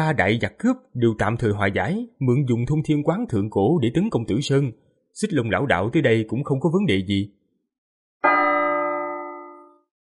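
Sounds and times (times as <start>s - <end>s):
speech: 0.0s - 7.4s
bell ringing: 8.2s - 9.9s.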